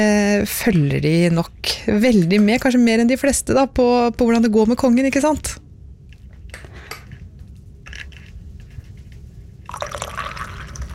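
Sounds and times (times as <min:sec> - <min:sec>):
speech: 0:00.0 - 0:05.6
coffee pouring into a cup: 0:09.7 - 0:10.9.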